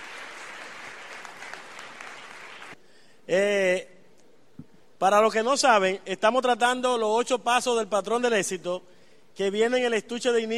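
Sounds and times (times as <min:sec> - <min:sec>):
audience applause: 0:00.0 - 0:02.8
speech: 0:03.3 - 0:03.9, 0:05.0 - 0:10.5.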